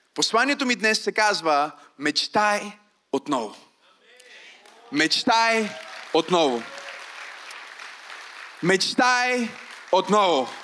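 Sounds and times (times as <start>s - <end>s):
speech: 0.2s - 3.7s, 4.9s - 6.8s, 8.6s - 10.6s
few people clapping: 4.5s - 10.6s.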